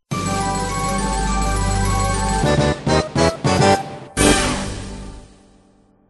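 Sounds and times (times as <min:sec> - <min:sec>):
music: 0:00.1 - 0:06.0.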